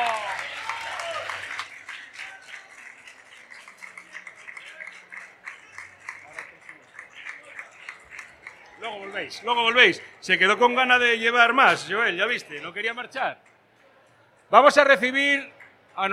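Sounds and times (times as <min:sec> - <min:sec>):
crowd applause: 0:00.0 - 0:12.6
speech: 0:08.9 - 0:13.5, 0:14.5 - 0:16.1.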